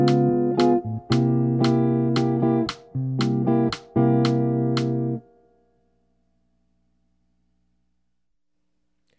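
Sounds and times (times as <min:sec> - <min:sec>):
jazz music: 0:00.0 - 0:05.2.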